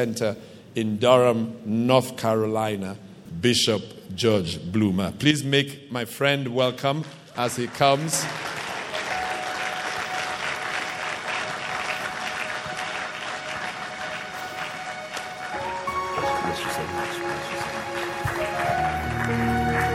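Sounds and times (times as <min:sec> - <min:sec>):
speech: 0:00.0 - 0:08.5
hand clapping: 0:07.0 - 0:19.9.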